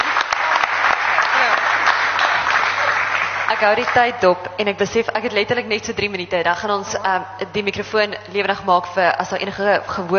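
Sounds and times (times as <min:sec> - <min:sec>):
audience applause: 0:00.0 - 0:04.1
speech: 0:03.6 - 0:10.1.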